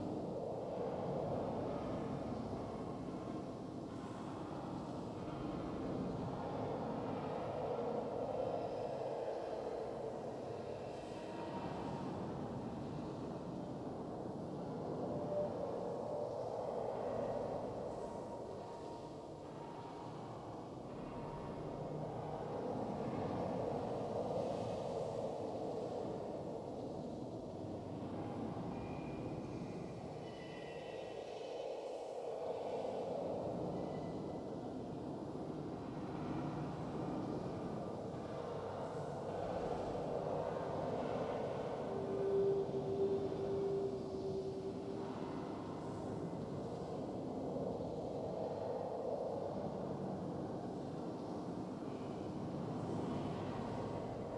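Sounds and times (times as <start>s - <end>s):
cave ambience: 0.0s - 54.3s.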